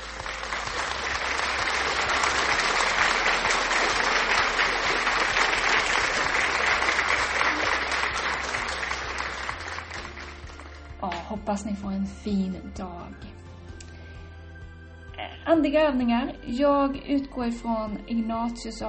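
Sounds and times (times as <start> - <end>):
audience applause: 0.0 - 11.0
speech: 11.5 - 13.4, 15.5 - 18.8.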